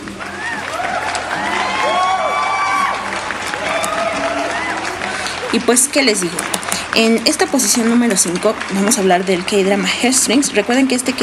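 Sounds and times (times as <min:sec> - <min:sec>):
applause: 0:00.0 - 0:11.2
speech: 0:05.5 - 0:11.2.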